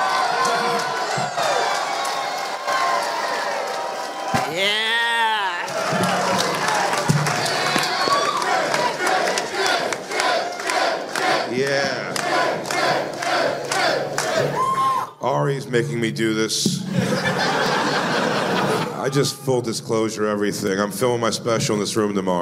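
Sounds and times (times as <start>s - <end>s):
crowd clapping and cheering: 0.0s - 15.1s
loud drawn-out whoop: 0.1s - 6.8s, 7.5s - 8.8s, 14.4s - 15.2s
speech: 15.2s - 17.6s, 19.0s - 22.4s
laughter: 16.9s - 19.5s.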